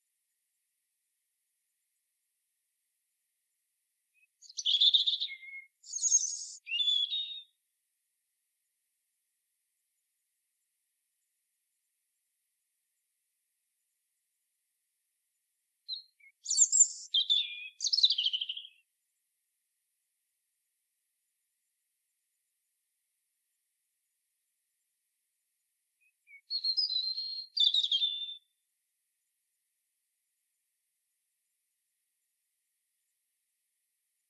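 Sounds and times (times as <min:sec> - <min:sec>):
European robin song: 0:04.2 - 0:07.5, 0:15.9 - 0:18.8, 0:26.0 - 0:28.5.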